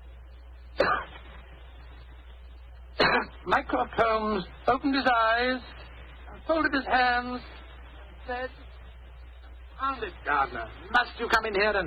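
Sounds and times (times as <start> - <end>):
person giving a discreet cough: 0.8 - 1.2, 3.0 - 3.4
speech: 3.1 - 5.8, 6.5 - 7.6, 8.3 - 8.6, 9.8 - 11.8.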